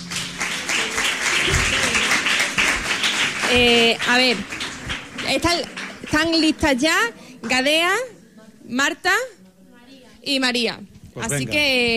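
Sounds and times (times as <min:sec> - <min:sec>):
crowd applause: 0:00.0 - 0:06.6
speech: 0:03.5 - 0:04.6, 0:05.3 - 0:08.1, 0:08.7 - 0:09.4, 0:10.2 - 0:11.9.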